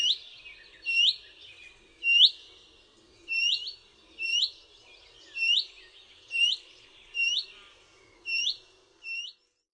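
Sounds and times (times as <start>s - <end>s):
willow warbler calls: 0.0s - 1.4s, 2.0s - 2.5s, 3.3s - 4.6s, 5.2s - 9.4s.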